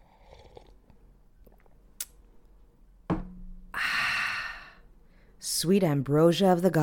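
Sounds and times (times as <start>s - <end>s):
person sipping coffee: 0.0s - 2.1s
speech: 5.6s - 6.8s.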